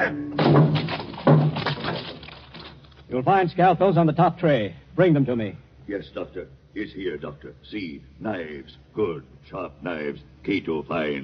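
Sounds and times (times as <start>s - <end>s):
locked cabinet being smashed open: 0.4s - 2.8s
faint rattle: 0.8s - 3.1s
speech: 3.1s - 11.2s.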